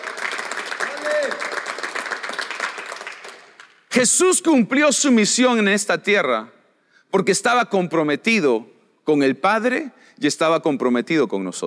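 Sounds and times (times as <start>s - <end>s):
audience applause: 0.0s - 3.8s
speech: 4.0s - 11.6s.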